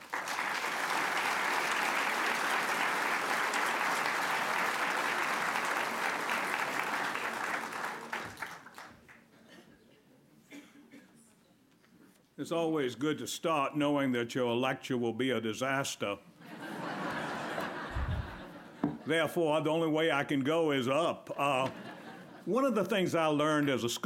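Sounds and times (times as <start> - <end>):
lecture audience clapping: 0.0 - 9.3, 17.4 - 18.5
speech: 12.4 - 16.3, 19.1 - 24.0
laughter: 16.4 - 19.3, 21.4 - 22.5.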